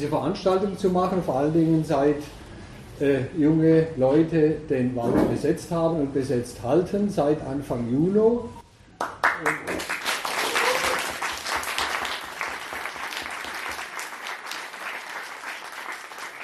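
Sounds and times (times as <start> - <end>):
speech: 0.0 - 2.4, 3.0 - 9.9
audience applause: 9.0 - 16.4.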